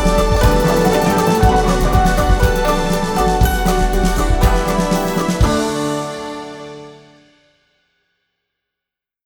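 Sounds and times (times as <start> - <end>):
guzheng playing electro bluegrass: 0.0 - 7.2.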